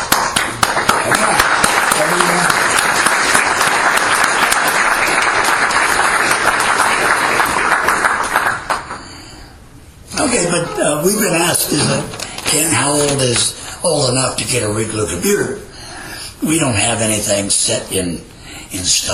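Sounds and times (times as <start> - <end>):
audience applause: 0.0 - 9.2
speech: 11.0 - 15.6, 16.4 - 19.1.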